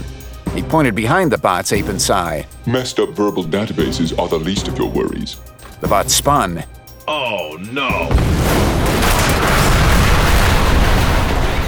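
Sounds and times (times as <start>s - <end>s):
speech: 0.6s - 8.3s
explosive mini MIRV missiles exploding on impact: 8.1s - 11.6s.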